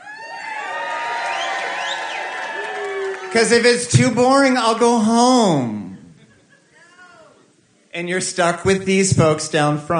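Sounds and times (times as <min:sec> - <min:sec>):
audience cheering at a comedy show: 0:00.0 - 0:05.6
speech: 0:03.3 - 0:05.9, 0:08.0 - 0:09.9.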